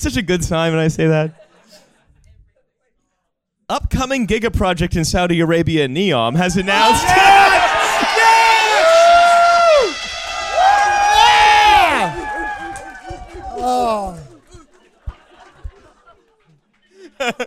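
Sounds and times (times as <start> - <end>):
speech: 0.0 - 1.4, 3.7 - 7.4, 17.2 - 17.4
people hooting like owls: 6.6 - 14.5
people chuckling: 13.8 - 17.4.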